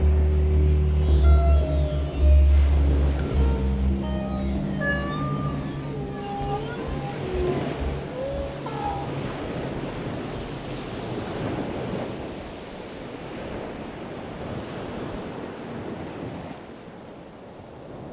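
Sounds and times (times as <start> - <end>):
ambience: 0.0 - 11.5.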